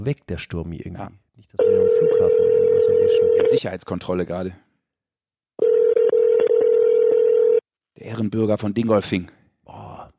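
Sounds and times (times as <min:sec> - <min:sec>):
speech: 0:00.0 - 0:04.6, 0:08.0 - 0:09.8
phone call ringing tone: 0:01.6 - 0:03.6, 0:05.6 - 0:07.6.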